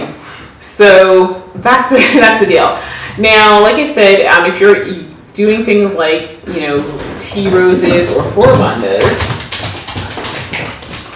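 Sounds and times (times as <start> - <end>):
speech: 0.7 - 9.3
dog running through a house: 6.6 - 11.1.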